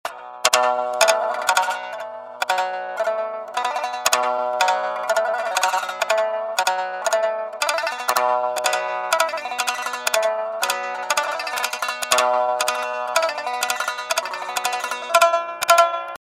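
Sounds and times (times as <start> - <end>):
shamisen: 0.1 - 16.2.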